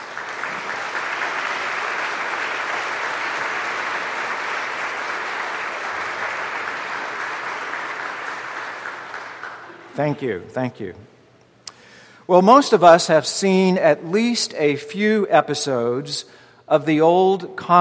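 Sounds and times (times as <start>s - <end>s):
audience applause: 0.0s - 10.0s
speech: 10.0s - 11.2s, 12.3s - 17.8s.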